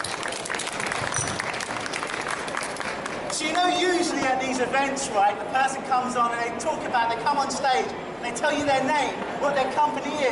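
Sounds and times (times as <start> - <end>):
crowd audience applause: 0.0 - 3.6
speech: 3.4 - 10.2.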